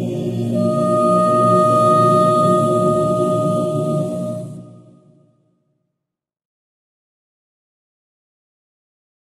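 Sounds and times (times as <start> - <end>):
choir singing a Basque lullaby: 0.0 - 5.3.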